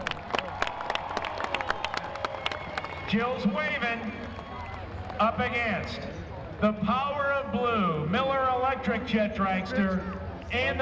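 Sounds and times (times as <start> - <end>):
crowd cheering: 0.0 - 6.0
speech: 3.1 - 4.4, 5.2 - 10.8.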